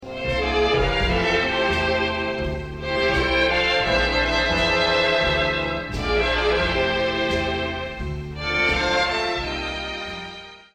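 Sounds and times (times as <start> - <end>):
string melody: 0.0 - 10.7.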